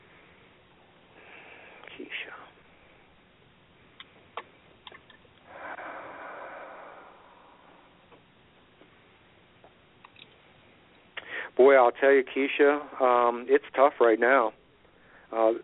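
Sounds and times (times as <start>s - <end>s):
person taking a slow deep breath: 1.1s - 1.9s, 5.4s - 8.2s, 11.2s - 11.6s
speech: 11.6s - 14.6s, 15.3s - 15.6s.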